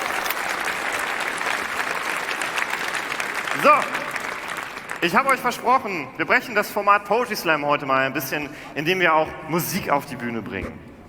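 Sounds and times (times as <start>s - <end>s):
audience applause: 0.0s - 5.8s
speech: 3.6s - 4.0s, 5.0s - 10.9s.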